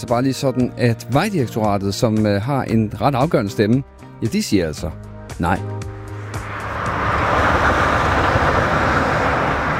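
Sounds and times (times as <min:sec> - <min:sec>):
speech: 0:00.0 - 0:05.8
E45 motorway traffic roar: 0:05.1 - 0:09.7.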